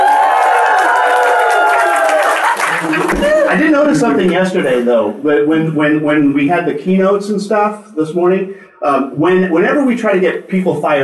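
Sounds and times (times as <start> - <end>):
clapping: 0.0 - 3.5
enthusiastic crowd cheering and shouting: 0.0 - 4.0
laughter: 1.6 - 4.9
speech: 3.6 - 11.0.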